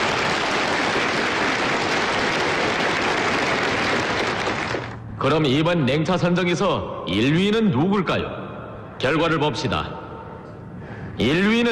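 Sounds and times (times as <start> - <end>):
audience applause: 0.0 - 5.0
speech: 5.2 - 8.4, 9.0 - 10.0, 11.2 - 11.7.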